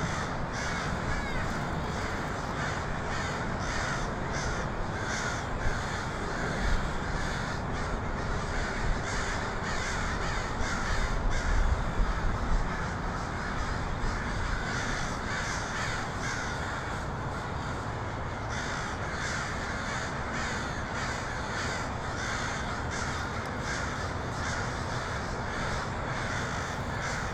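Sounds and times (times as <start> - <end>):
crows cawing in a large group: 0.0 - 27.3.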